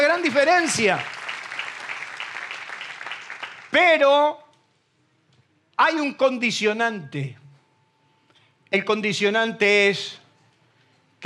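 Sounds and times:
audience applause: 0:00.0 - 0:03.8
speech: 0:00.2 - 0:01.2, 0:03.7 - 0:04.4, 0:05.8 - 0:07.4, 0:08.7 - 0:10.2.

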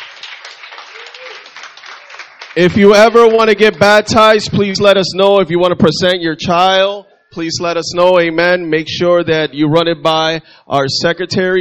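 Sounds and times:
audience applause: 0:00.0 - 0:04.1
speech: 0:02.6 - 0:11.6.

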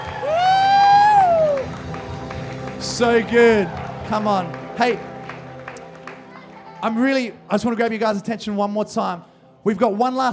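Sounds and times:
loud sustained high whoop: 0:00.0 - 0:01.7
crowd clapping and shouting: 0:00.0 - 0:07.4
speech: 0:03.0 - 0:05.1, 0:06.8 - 0:10.3.

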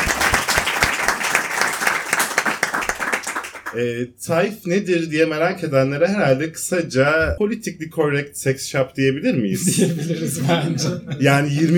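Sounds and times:
applause: 0:00.0 - 0:03.8
speech: 0:03.7 - 0:11.7
laughter: 0:09.4 - 0:11.7.

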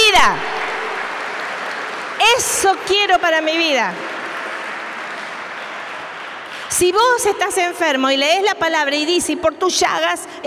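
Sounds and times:
audience applause: 0:00.0 - 0:06.9
speech: 0:00.2 - 0:00.5, 0:02.4 - 0:04.1, 0:06.7 - 0:10.4.

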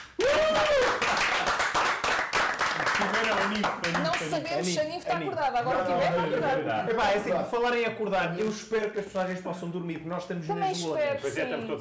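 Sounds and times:
hand clapping applause: 0:00.0 - 0:04.5
speech: 0:03.5 - 0:11.8.

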